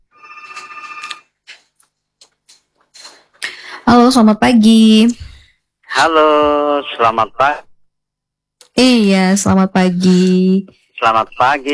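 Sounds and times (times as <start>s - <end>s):
telephone ringing for an incoming caller: 0.0s - 1.4s
speech: 3.9s - 5.3s, 6.0s - 7.7s, 8.8s - 11.7s.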